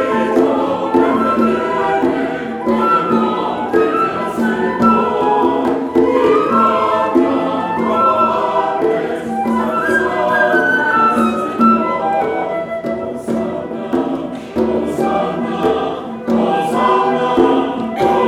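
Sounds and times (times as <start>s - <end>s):
Guatemalan santo flute playing: 0.0s - 18.2s.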